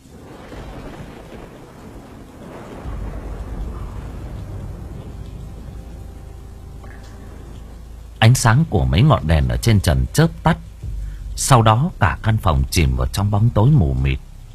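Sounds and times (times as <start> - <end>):
rain: 0.0 - 14.5
wind: 0.0 - 14.5
deafening explosion outdoors: 0.2 - 8.2
speech: 8.3 - 10.7, 11.4 - 14.3.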